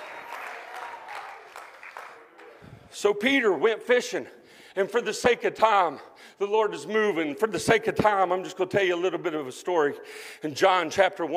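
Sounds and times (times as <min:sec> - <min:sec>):
crowd clapping: 0:00.0 - 0:02.9
speech: 0:03.0 - 0:11.3.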